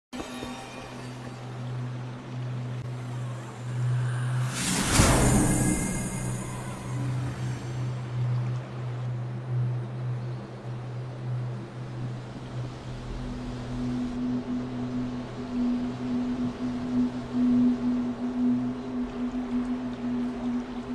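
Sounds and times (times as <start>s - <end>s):
meditation music: 0.5s - 20.9s.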